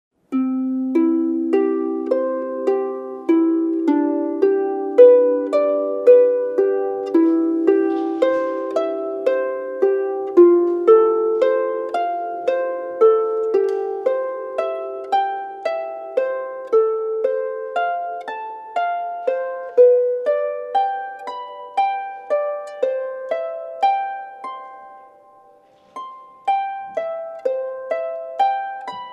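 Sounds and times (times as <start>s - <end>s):
harp: 0.2s - 29.1s.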